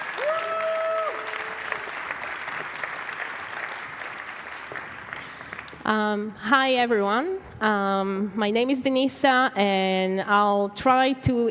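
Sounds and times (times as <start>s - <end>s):
audience applause: 0.0s - 5.8s
speech: 5.9s - 11.5s.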